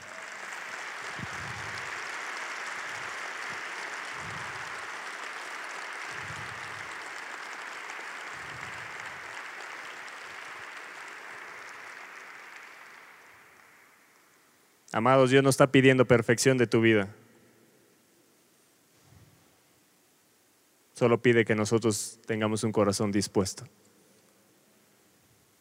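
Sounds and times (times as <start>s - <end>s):
large audience applauding: 0.0s - 14.6s
speech: 14.9s - 17.2s, 21.0s - 23.9s.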